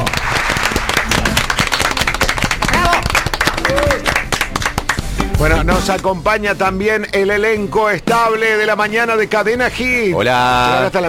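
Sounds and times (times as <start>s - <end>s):
applause: 0.0s - 5.1s
speech: 5.4s - 11.0s.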